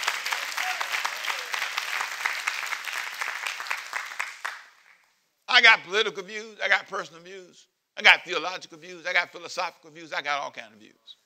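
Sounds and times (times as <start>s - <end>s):
audience clapping hands: 0.0s - 5.2s
speech: 5.6s - 11.2s.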